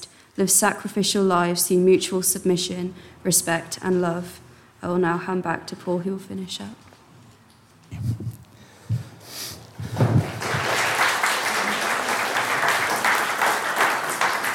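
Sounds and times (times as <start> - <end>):
speech: 0.4 - 6.9
audience applause: 9.9 - 14.5.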